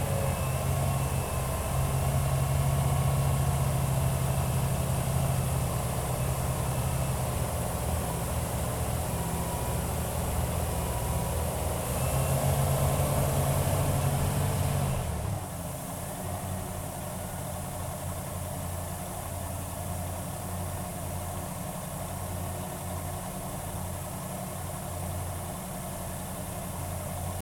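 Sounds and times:
Wellcraft Scarab 34 boat engine accelerating: 0.0s - 17.4s
Wellcraft Scarab 34 boat engine shutting down: 0.0s - 27.4s.

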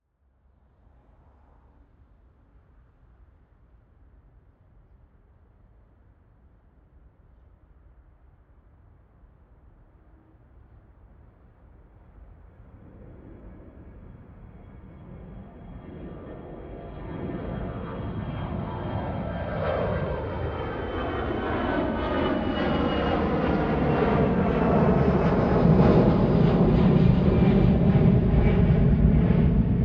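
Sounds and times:
planes taking off: 12.2s - 29.8s.

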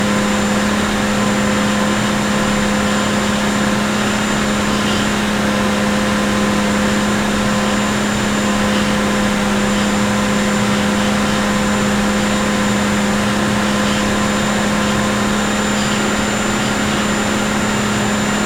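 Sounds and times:
Bandkanon 1C artillery vehicle engine starting, driving, reversing and stopping: 0.0s - 18.4s.

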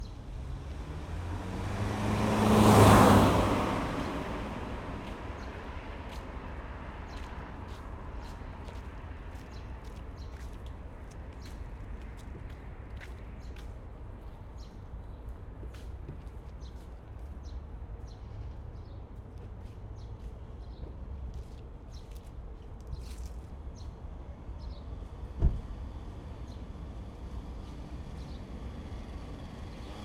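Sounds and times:
daytime summer street traffic in Moscow: 0.0s - 30.0s
car passing on a narrow street: 0.3s - 8.2s.

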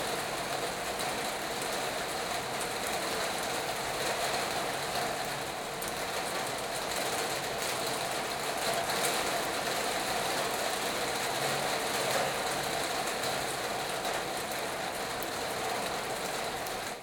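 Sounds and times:
rain pouring on a metal garage roof heard from inside: 0.0s - 17.0s.

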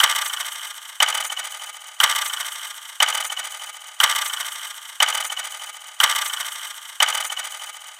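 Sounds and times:
trailer clock effects: 0.0s - 7.9s.

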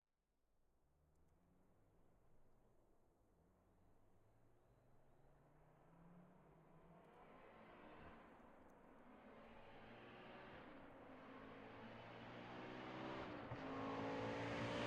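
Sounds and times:
Audi Quattro driving fast exterior: 9.8s - 14.8s.

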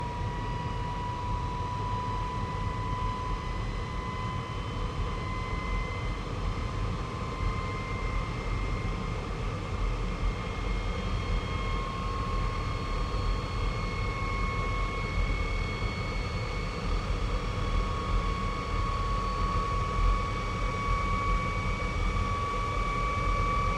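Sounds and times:
MiG-15 UTI jet aircraft departing: 0.0s - 23.7s.

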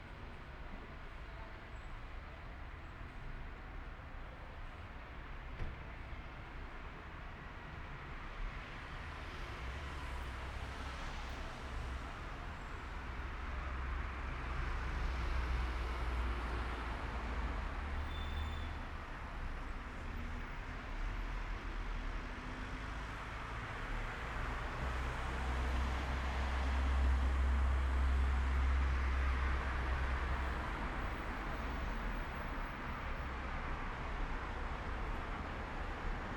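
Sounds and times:
night traffic on a main street heard from a balcony in Madrid: 0.0s - 36.3s.

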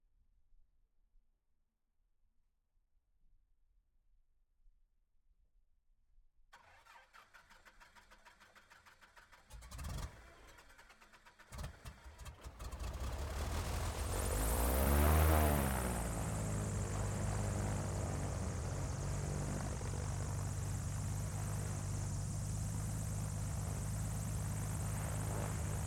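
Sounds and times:
Extra 300 airplane engine starting, idling and revving: 11.8s - 25.8s.

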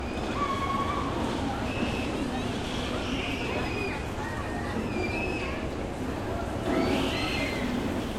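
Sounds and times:
people screaming on a fun fair ride: 0.1s - 2.2s, 3.0s - 5.8s, 6.6s - 8.0s.

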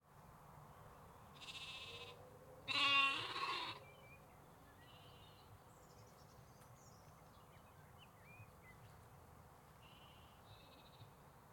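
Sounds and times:
sheep and lambs bleating in the UK: 1.4s - 3.8s.

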